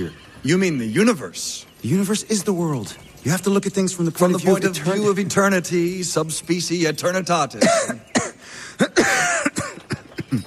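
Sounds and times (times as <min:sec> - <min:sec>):
speech: 0:00.0 - 0:08.1
person coughing: 0:07.6 - 0:10.4.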